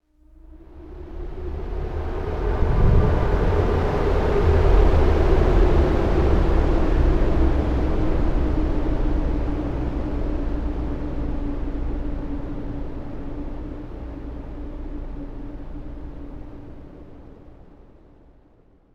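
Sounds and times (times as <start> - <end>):
wind: 0.3 - 18.5.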